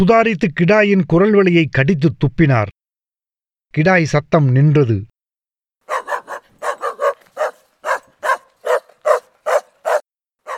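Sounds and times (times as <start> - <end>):
speech: 0.0 - 2.8, 3.7 - 5.1
dog barking: 5.9 - 10.5.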